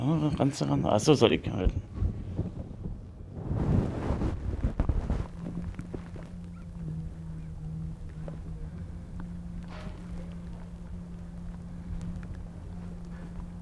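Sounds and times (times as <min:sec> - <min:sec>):
speech: 0:00.0 - 0:02.5
implanted heart pump humming in chest: 0:01.6 - 0:13.5
rubbing and rustling: 0:03.4 - 0:13.5.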